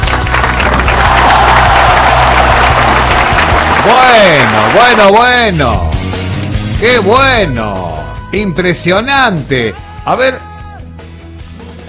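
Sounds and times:
applause: 0.0s - 5.4s
speech: 3.9s - 5.9s, 6.8s - 10.5s.

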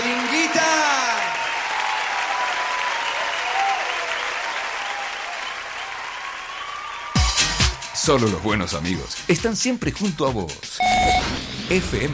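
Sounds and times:
crowd applause: 0.0s - 8.5s
speech: 8.1s - 12.1s.

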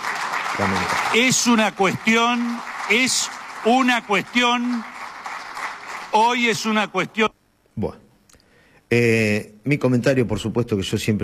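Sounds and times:
crowd hand clapping: 0.0s - 7.3s
speech: 0.6s - 5.0s, 6.1s - 8.0s, 8.9s - 11.2s.

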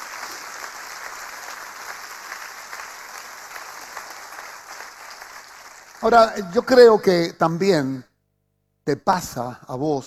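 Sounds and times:
audience applause: 0.0s - 6.4s
speech: 6.0s - 8.1s, 8.8s - 10.0s.

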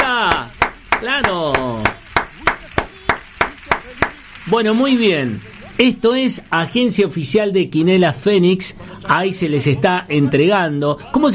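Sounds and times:
hands clapping for a lottery prize winner at an official quiniela agency: 0.0s - 6.8s
speech: 1.0s - 1.6s, 4.5s - 11.3s.

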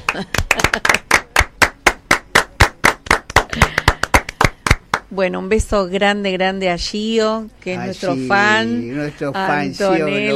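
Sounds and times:
hands clapping: 0.0s - 5.1s
speech: 0.2s - 1.0s, 5.1s - 10.3s.

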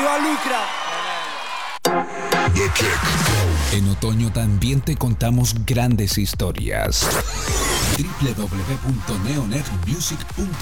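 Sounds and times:
audience applause and crowd noise: 0.0s - 1.8s
speech: 0.2s - 0.9s, 2.6s - 10.6s.

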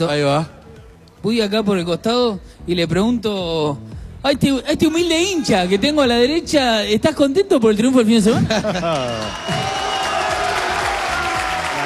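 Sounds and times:
speech: 0.0s - 0.6s, 1.2s - 9.7s
laughter: 8.3s - 9.6s
crowd applause and cheering: 8.6s - 11.8s.

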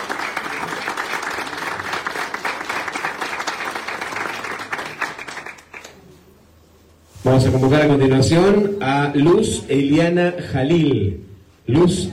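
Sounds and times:
audience applause: 0.0s - 6.0s
speech: 7.3s - 12.1s.

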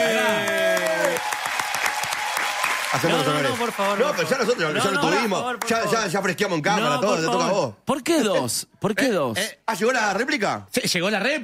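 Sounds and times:
applause: 0.0s - 5.8s
speech: 2.9s - 11.4s.

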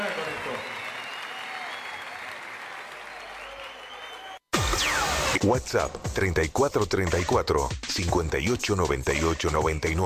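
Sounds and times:
applause: 0.0s - 4.4s
speech: 5.4s - 10.0s.

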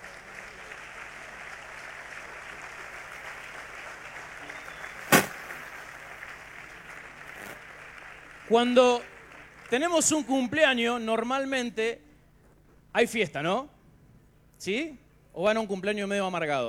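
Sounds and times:
audience applause: 0.0s - 10.8s
speech: 8.5s - 9.1s, 9.7s - 12.0s, 13.0s - 13.7s, 14.6s - 16.6s.

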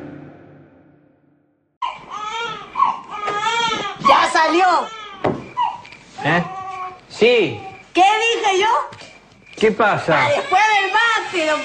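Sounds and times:
newborn baby boy crying: 1.8s - 7.8s, 10.1s - 11.6s
speech: 4.4s - 5.0s, 6.2s - 6.6s, 7.2s - 9.0s, 9.6s - 11.6s.

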